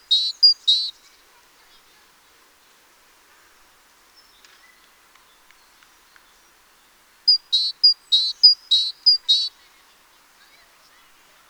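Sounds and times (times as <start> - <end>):
great tit Parus major calls: 0.0 - 1.1, 7.3 - 9.5.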